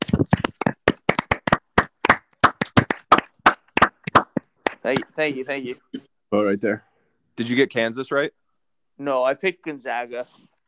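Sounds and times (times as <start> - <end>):
people clapping: 0.0 - 5.4
speech: 4.8 - 8.4, 9.0 - 10.5.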